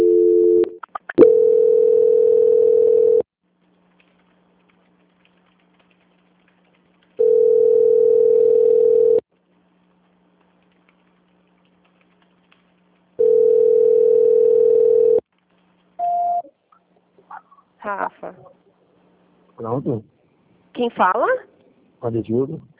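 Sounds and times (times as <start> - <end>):
telephone line tones during an attempted call transfer: 0.0 - 3.3, 7.2 - 9.2, 13.2 - 15.2
speech: 21.0 - 21.4, 22.0 - 22.7.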